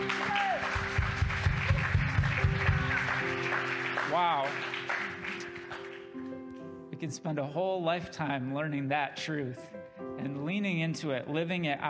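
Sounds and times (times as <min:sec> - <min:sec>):
audience clapping: 0:00.0 - 0:06.2
speech: 0:07.0 - 0:11.8.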